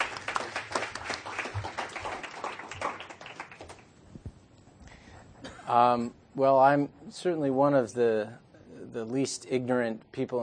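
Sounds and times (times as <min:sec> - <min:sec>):
audience round of applause: 0:00.0 - 0:03.9
speech: 0:05.7 - 0:10.4.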